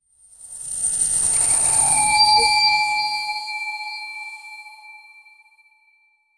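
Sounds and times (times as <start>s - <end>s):
short Wild West style chime: 1.4s - 4.2s.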